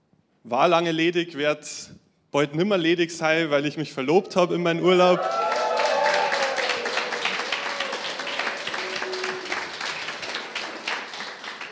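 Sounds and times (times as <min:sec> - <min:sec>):
speech: 0:00.4 - 0:05.7
faint voices and cheers: 0:04.8 - 0:09.8
crowd applauding enthusiastically: 0:05.0 - 0:11.7.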